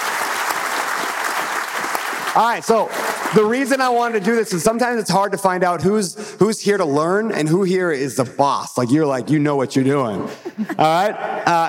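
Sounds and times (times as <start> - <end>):
audience applause: 0.0 - 4.6
speech: 2.4 - 11.6
laughter: 10.2 - 11.6.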